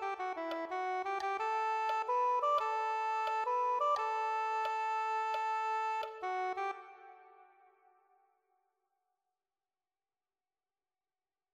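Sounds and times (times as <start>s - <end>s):
soprano saxophone: 0.0s - 8.0s.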